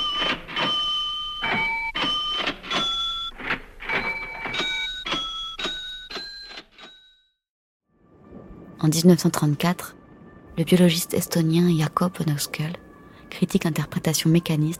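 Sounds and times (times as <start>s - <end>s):
music played on a cash register: 0.0s - 7.3s
speech: 8.9s - 10.0s, 10.6s - 14.7s.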